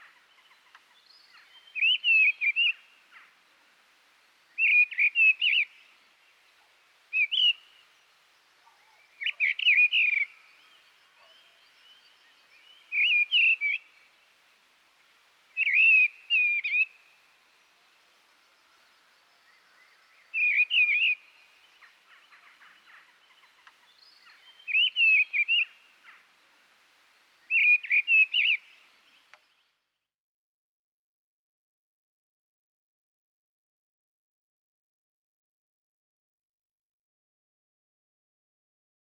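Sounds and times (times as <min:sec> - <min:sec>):
mistle thrush bird sounds: 0:00.0 - 0:03.4, 0:04.5 - 0:06.1, 0:07.1 - 0:14.1, 0:15.6 - 0:26.3, 0:27.4 - 0:29.6.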